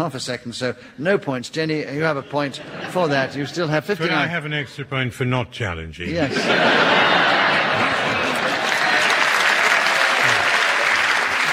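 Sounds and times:
speech: 0.0s - 7.2s
laughter: 1.9s - 4.6s, 6.1s - 11.5s
audience applause: 6.3s - 11.5s.

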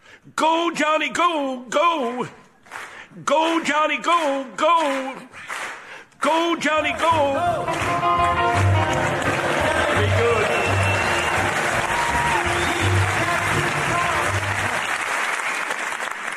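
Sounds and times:
speech: 0.3s - 2.4s, 3.2s - 5.5s, 6.2s - 8.5s
crowd clapping: 2.0s - 16.3s
faint cheers and voices: 8.6s - 14.8s.

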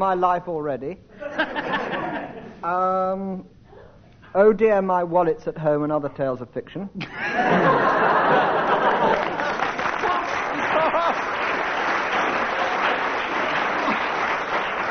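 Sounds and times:
speech: 0.0s - 3.6s, 4.3s - 8.6s
laughter: 1.2s - 2.6s, 7.0s - 14.5s
audience applause: 8.0s - 14.8s.

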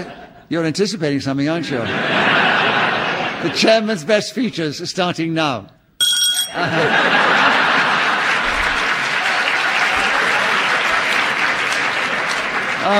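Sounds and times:
laughter: 0.0s - 0.5s, 1.5s - 4.6s, 6.5s - 12.9s
speech: 0.0s - 2.6s, 3.4s - 5.8s, 6.5s - 7.4s
audience applause: 6.7s - 12.9s.

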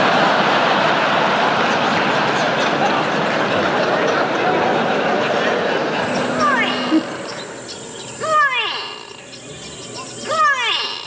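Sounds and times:
laughter: 0.0s - 7.6s
grey go-away bird calling: 6.0s - 11.0s.

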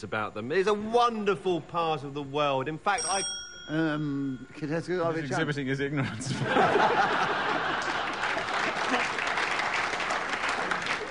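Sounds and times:
speech: 0.0s - 7.5s
laughter: 5.2s - 11.1s
audience applause: 7.1s - 11.1s.

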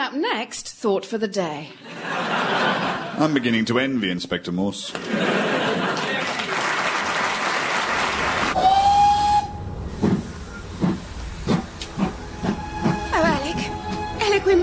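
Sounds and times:
speech: 0.1s - 5.4s
laughter: 1.8s - 3.6s, 4.8s - 7.6s
steam train whistle blast: 8.6s - 10.7s, 12.0s - 14.2s
loud steady steam hissing: 8.6s - 14.2s.

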